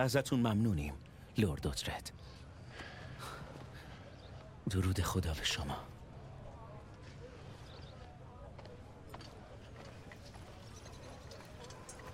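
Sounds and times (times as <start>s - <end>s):
speech: 0.0s - 2.9s, 4.7s - 5.9s
horses' hooves clip-clopping: 6.8s - 12.1s.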